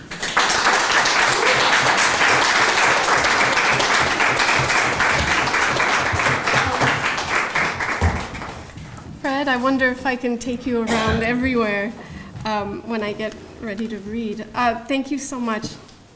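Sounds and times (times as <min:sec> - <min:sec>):
audience applause for an author at a book reading: 0:00.0 - 0:08.8
speech: 0:09.4 - 0:15.8.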